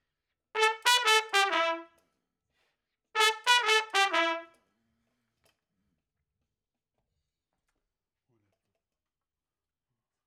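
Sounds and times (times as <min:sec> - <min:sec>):
trumpet: 0:00.6 - 0:02.0, 0:03.2 - 0:04.7.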